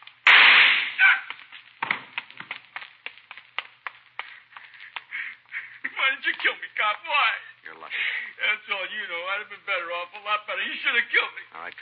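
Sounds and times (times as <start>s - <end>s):
sharp cracks and clicks: 0.0s - 5.3s
gunshot in a radio crime drama: 0.2s - 2.1s
speech: 6.4s - 11.7s.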